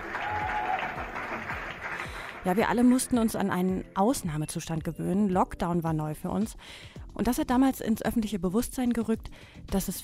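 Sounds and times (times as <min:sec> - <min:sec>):
evening applause from streets and backyards: 0:00.0 - 0:03.2
speech: 0:02.4 - 0:10.0.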